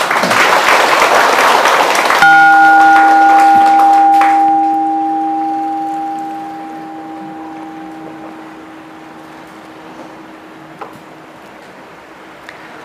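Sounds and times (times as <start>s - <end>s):
round of applause: 0.0s - 4.8s.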